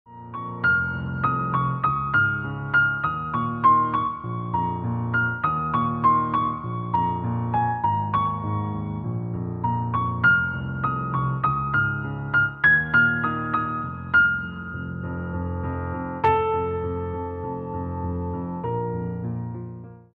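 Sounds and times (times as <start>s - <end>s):
piano cover: 0.1s - 20.1s.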